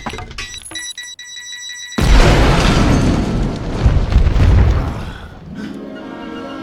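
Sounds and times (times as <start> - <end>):
bomb explosion in an animated film: 2.0 - 5.5.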